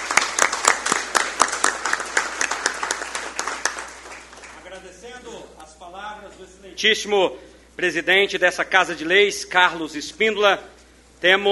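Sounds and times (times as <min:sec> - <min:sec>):
audience applause: 0:00.0 - 0:04.7
speech: 0:06.1 - 0:11.5.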